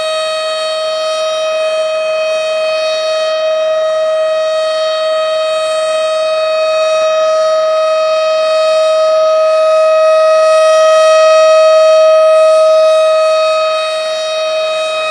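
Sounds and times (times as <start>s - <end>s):
tornado siren: 0.0s - 15.0s.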